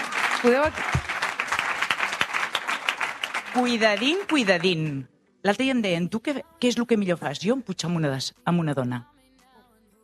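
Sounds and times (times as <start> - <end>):
audience applause: 0.0 - 5.0
speech: 0.4 - 1.1, 3.6 - 9.1.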